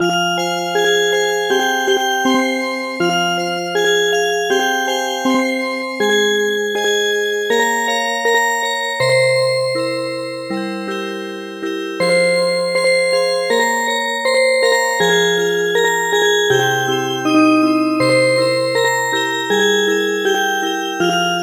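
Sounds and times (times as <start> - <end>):
music box: 0.0 - 21.4.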